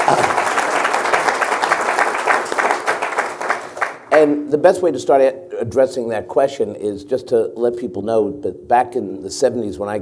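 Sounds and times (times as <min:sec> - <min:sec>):
audience round of applause: 0:00.0 - 0:04.3
speech: 0:00.1 - 0:00.3, 0:04.2 - 0:10.0.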